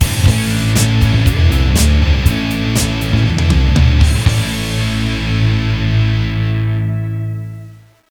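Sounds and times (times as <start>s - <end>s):
baseball music: 0.0s - 8.0s.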